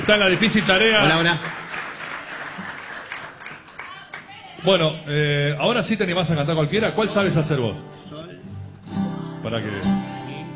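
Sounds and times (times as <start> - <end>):
speech: 0.0 - 1.6, 4.6 - 10.5
audience applause for a guest at a live show: 0.0 - 4.7.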